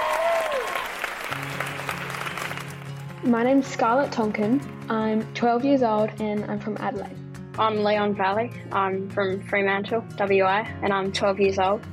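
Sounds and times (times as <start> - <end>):
applause welcoming the Fred Hollows Junior Ambassadors: 0.0 - 3.3
speech: 3.2 - 11.9.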